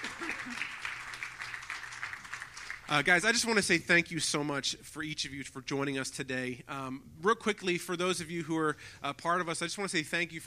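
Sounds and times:
audience applause welcoming a panel at a discussion on racism: 0:00.0 - 0:03.2
speech: 0:02.9 - 0:10.4.

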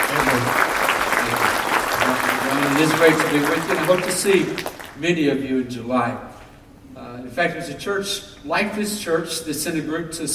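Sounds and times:
audience applause at Edgewood church welcoming a guest speaker: 0:00.0 - 0:05.0
speech: 0:02.8 - 0:06.3, 0:07.3 - 0:10.3.

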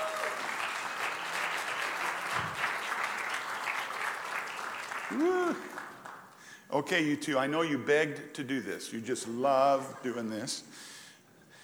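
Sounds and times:
whistle-like cheer: 0:00.0 - 0:00.5
audience applauding returning missionaries: 0:00.0 - 0:06.2
speech: 0:05.1 - 0:05.7, 0:06.7 - 0:10.9.

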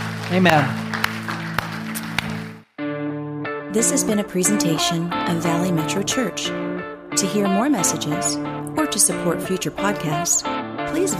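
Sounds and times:
audience clapping hands: 0:00.0 - 0:02.7
speech: 0:00.3 - 0:00.8, 0:03.7 - 0:11.1.

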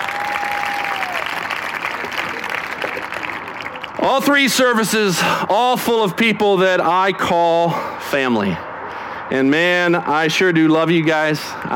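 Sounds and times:
audience applause: 0:00.0 - 0:04.0
speech: 0:04.0 - 0:08.6, 0:09.3 - 0:11.7.

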